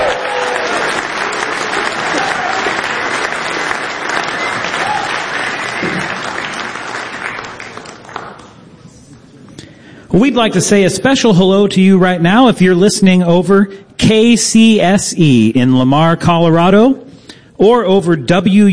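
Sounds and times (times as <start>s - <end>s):
audience applause for a performer: 0.0s - 8.7s
speech: 10.2s - 18.7s.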